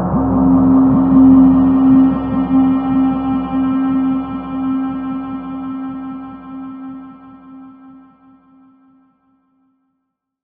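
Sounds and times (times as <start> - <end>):
guitars playing octaves: 0.2 - 7.8.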